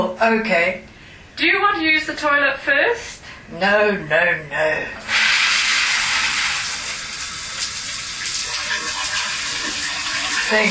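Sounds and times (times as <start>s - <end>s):
speech: 0.0s - 5.1s, 10.5s - 10.6s
shower water running: 5.0s - 10.6s.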